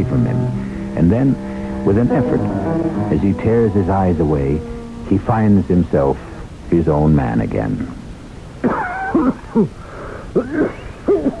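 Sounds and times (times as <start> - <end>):
speech: 0.0 - 0.4, 1.0 - 8.0, 8.6 - 9.8, 10.4 - 11.3
harsh cough: 8.6 - 9.7, 10.4 - 11.3.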